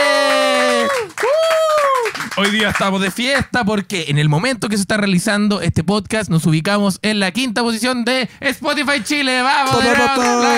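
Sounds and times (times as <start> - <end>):
studio applause and cheering: 0.0 - 3.5, 9.7 - 10.5
speech: 2.4 - 10.5.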